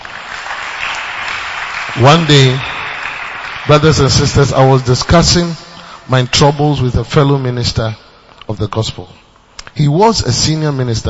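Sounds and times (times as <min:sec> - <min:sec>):
audience clapping: 0:00.0 - 0:05.9
speech: 0:01.9 - 0:02.7, 0:03.7 - 0:09.2, 0:09.8 - 0:11.0.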